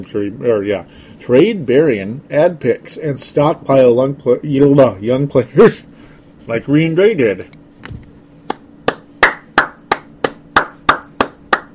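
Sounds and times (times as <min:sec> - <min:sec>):
speech: 0:00.0 - 0:07.6
one person clapping hands: 0:08.4 - 0:11.7.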